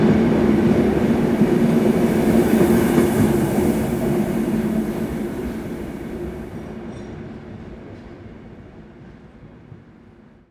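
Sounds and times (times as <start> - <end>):
train engine starting and leaving: 0.1 - 7.1.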